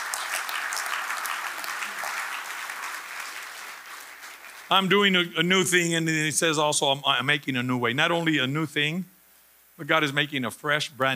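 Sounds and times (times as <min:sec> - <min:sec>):
church congregation giving a clap offering during a sermon: 0:00.0 - 0:05.8
speech: 0:04.7 - 0:09.1, 0:09.8 - 0:11.1.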